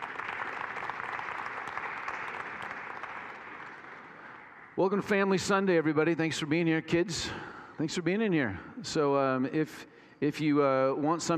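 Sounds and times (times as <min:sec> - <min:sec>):
church congregation applauding the worship team: 0:00.0 - 0:05.6
speech: 0:04.8 - 0:11.3.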